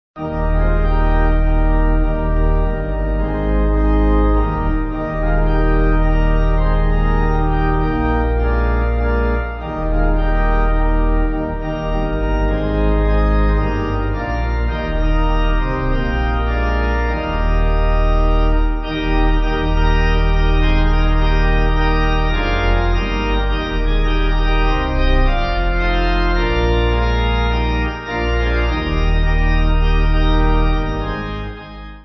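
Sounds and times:
pipe organ: 0:00.2 - 0:32.0.

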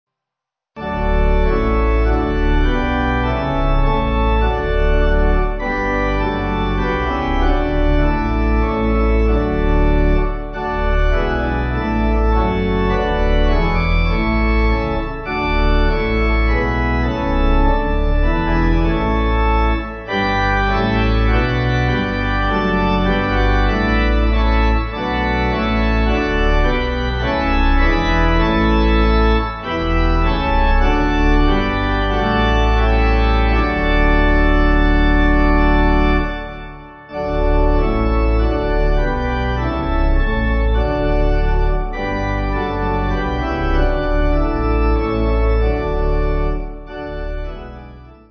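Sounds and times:
church pipe organ backing: 0:00.8 - 0:48.2.

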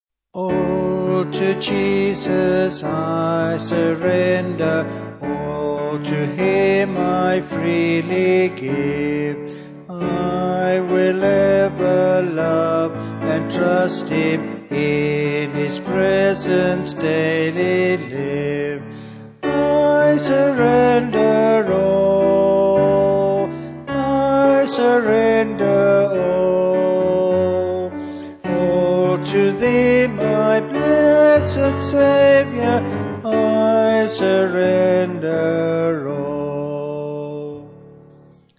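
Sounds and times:
person singing: 0:00.4 - 0:38.0
piano: 0:00.4 - 0:38.5.

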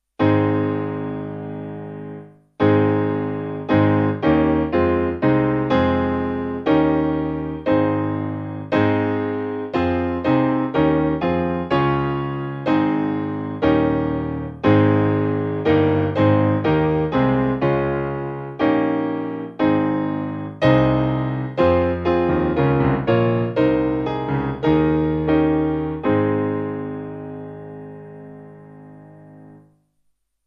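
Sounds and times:
hymn on piano: 0:00.2 - 0:29.7.

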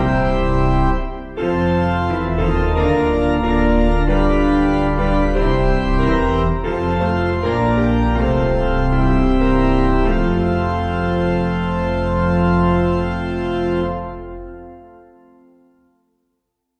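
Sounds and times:
organ: 0:00.0 - 0:15.9
piano: 0:00.0 - 0:16.2.

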